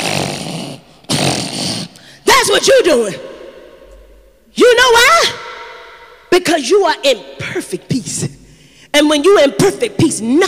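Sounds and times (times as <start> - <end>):
person imitating loud snoring: 0.0 - 2.0
speech: 2.5 - 3.3, 6.4 - 8.4, 9.0 - 10.4.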